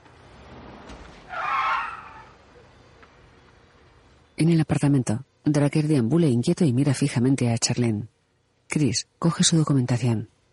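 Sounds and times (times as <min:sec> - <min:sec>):
tyre screech as a police patrol car cuts off a vehicle: 0:01.2 - 0:02.4
speech: 0:04.4 - 0:10.4.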